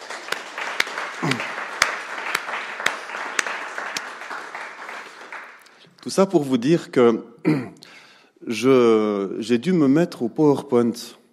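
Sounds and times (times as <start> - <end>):
crowd applauding: 0.0 - 5.8
sharper evenly spaced rhythmic claps: 0.0 - 6.0
speech: 1.2 - 1.5, 6.0 - 11.2.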